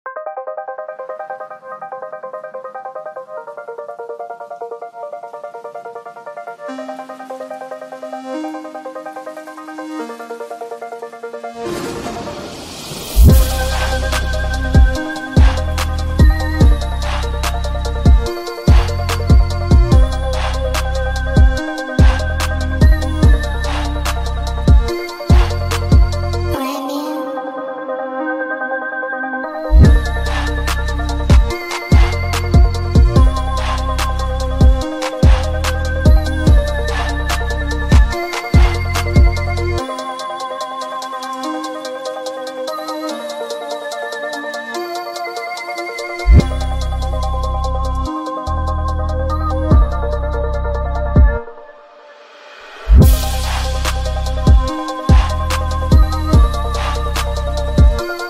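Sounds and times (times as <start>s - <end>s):
hardvapour beat: 13.2s - 26.6s, 29.7s - 51.6s, 52.8s - 58.2s.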